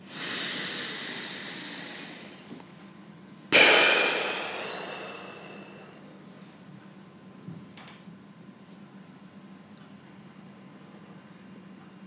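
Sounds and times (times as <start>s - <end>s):
deep inhale through the nose: 0.0s - 2.5s, 3.6s - 6.0s
exhale through the mouth: 0.0s - 2.5s, 3.6s - 6.0s.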